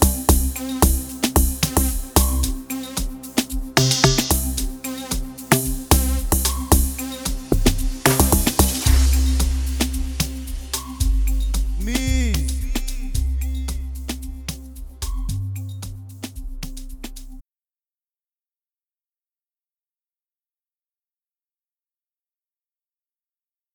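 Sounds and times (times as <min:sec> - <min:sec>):
amapiano type beat: 0:00.0 - 0:17.4.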